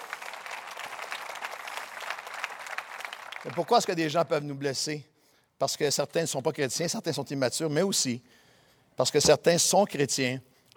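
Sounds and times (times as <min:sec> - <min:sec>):
audience applause: 0:00.0 - 0:04.1
speech: 0:03.4 - 0:08.4, 0:09.0 - 0:10.5.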